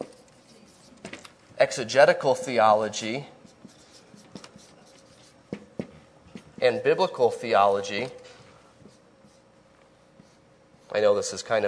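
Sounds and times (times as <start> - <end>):
writing on a board during a theology lecture: 0.0 - 1.1, 3.4 - 6.8, 8.8 - 11.0
speech: 1.6 - 3.3, 6.7 - 8.2, 11.0 - 11.6.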